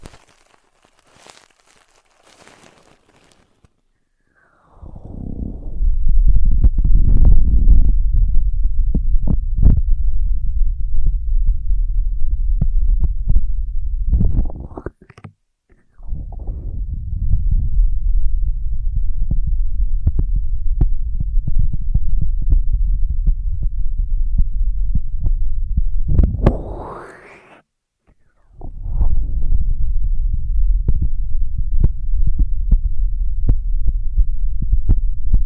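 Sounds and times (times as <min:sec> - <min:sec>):
deep muffled throbbing rumble: 0:04.9 - 0:14.4, 0:16.0 - 0:27.0, 0:28.6 - 0:35.4
quick swooping sweep: 0:26.3 - 0:27.6.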